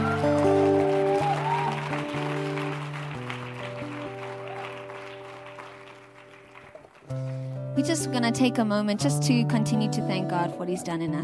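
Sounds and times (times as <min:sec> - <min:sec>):
audience applause: 0:00.0 - 0:07.6
speech: 0:07.8 - 0:11.2.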